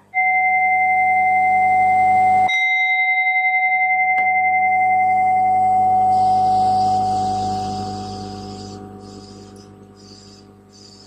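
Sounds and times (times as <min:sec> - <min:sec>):
Buddhist meditation bell ringing: 0:00.2 - 0:08.4.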